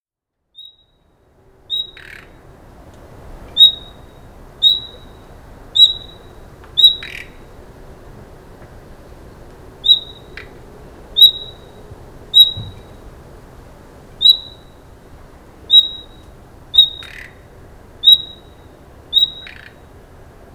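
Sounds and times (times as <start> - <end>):
common nightingale whistles: 3.6 - 5.2, 5.8 - 7.3, 9.8 - 10.3, 11.2 - 11.7, 12.4 - 13.0, 14.2 - 14.8, 15.7 - 16.2, 16.8 - 17.2, 18.0 - 19.7.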